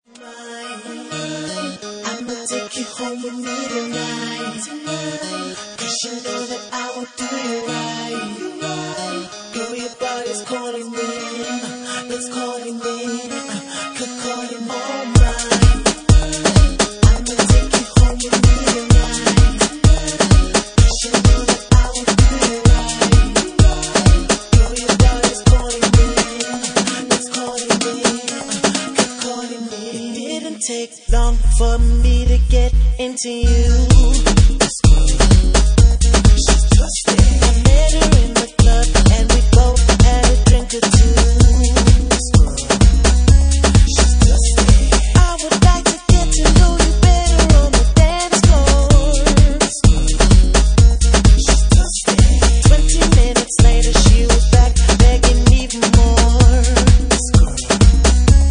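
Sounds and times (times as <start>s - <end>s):
UK funky music mix: 0.1s - 58.4s.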